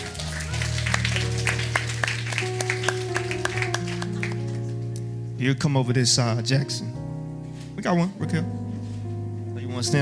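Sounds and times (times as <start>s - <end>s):
audience clapping: 0.0s - 5.1s
speech: 5.4s - 7.0s, 7.8s - 8.6s, 9.8s - 10.0s.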